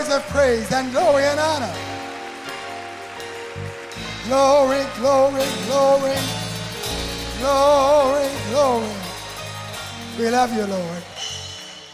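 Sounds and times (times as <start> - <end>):
audience clapping hands: 0.0 - 9.1
speech: 0.1 - 1.9, 4.3 - 6.4, 7.4 - 9.1, 10.2 - 11.2.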